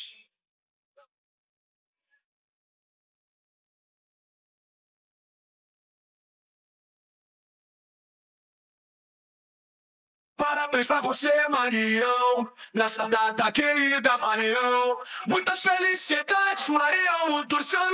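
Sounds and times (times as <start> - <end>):
person singing: 10.4 - 17.9.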